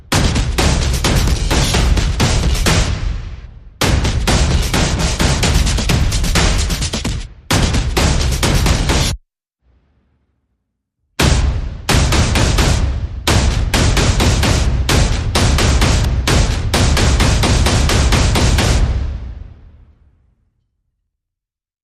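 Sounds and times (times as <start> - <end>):
percussion: 0.0 - 9.2, 11.2 - 19.0.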